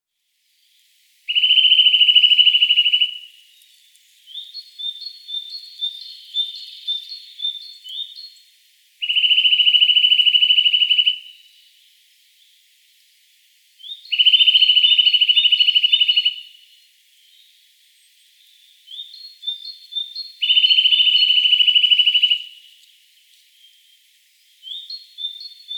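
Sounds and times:
Eurasian nuthatch Sitta europaea calling: 0:01.3 - 0:03.7, 0:04.3 - 0:08.4, 0:09.0 - 0:11.3, 0:13.8 - 0:16.6, 0:18.9 - 0:22.6, 0:24.6 - 0:25.7.

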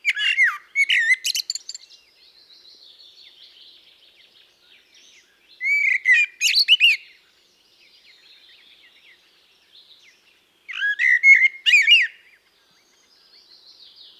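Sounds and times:
common blackbird song, Turdus merula: 0:00.0 - 0:14.1.

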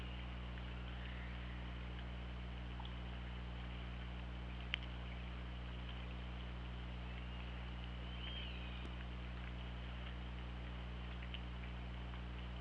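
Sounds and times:
steady low hum and hiss: 0:00.0 - 0:12.5
killer whale call: 0:07.1 - 0:08.9.

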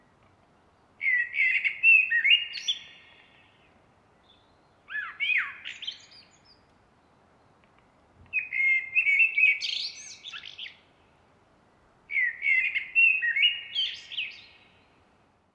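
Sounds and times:
common blackbird fluty song: 0:00.6 - 0:11.2, 0:12.1 - 0:15.1.

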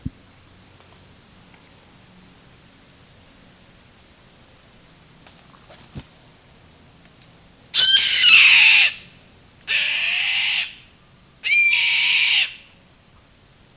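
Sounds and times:
bird harsh hissing screeches: 0:07.8 - 0:09.1, 0:09.7 - 0:10.8, 0:11.4 - 0:12.6.

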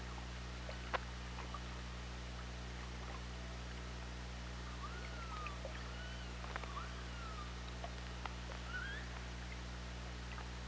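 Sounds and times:
constant low hum: 0:00.0 - 0:10.6
killer whale whistled calls: 0:04.6 - 0:07.6, 0:08.6 - 0:09.2.

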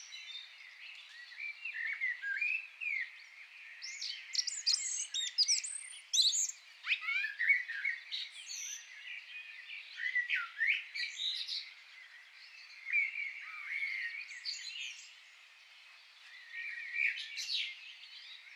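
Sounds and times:
Eurasian blackbird singing: 0:00.0 - 0:15.4, 0:16.0 - 0:18.5.

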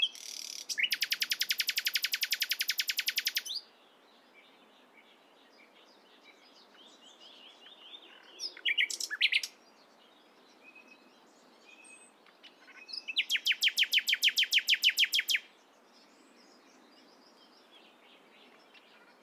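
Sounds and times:
Common nightingale Luscinia megarhynchos whistled song: 0:00.0 - 0:12.2, 0:12.8 - 0:15.5.

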